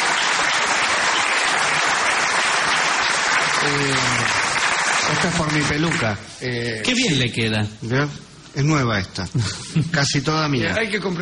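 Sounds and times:
audience applause: 0.0 - 6.2
speech: 3.6 - 4.4, 5.1 - 11.2.

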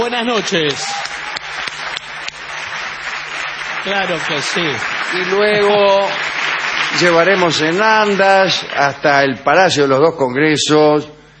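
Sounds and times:
speech: 0.0 - 1.0, 3.8 - 6.2, 6.9 - 11.2
audience ovation opening a show: 0.0 - 9.0.

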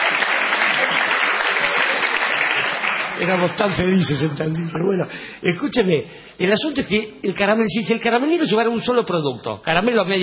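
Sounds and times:
audience applause: 0.0 - 4.8
speech: 3.2 - 10.2.

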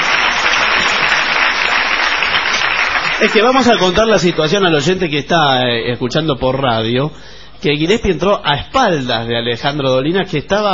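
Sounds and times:
studio audience applause: 0.0 - 4.8
speech: 3.2 - 10.7.

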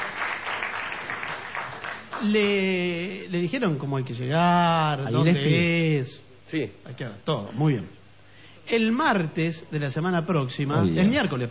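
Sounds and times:
studio audience applause: 0.0 - 2.7
speech: 2.2 - 8.0, 8.7 - 11.4.

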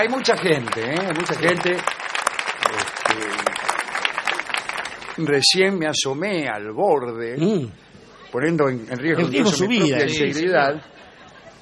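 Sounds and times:
speech: 0.0 - 2.0, 5.2 - 11.0
audience applause: 0.0 - 5.8
laughter: 9.0 - 11.6.

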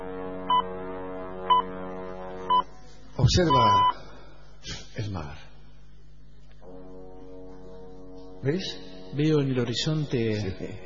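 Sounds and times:
deep boat horn blast: 0.0 - 2.8, 6.6 - 9.0
speech: 3.2 - 5.4, 8.4 - 10.8.

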